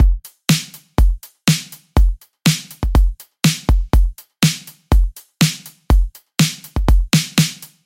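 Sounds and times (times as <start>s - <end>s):
battery drum beat: 0.0s - 7.8s.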